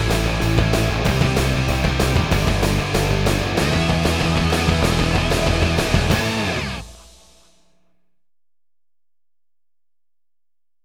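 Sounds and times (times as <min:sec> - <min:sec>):
instrumental theme music: 0:00.0 - 0:07.4.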